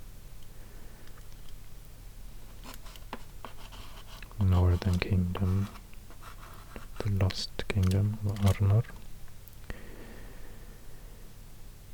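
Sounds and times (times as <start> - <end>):
pen scratching as a name is written on a map: 2.5 - 7.2
speech: 4.4 - 5.8, 7.0 - 9.0.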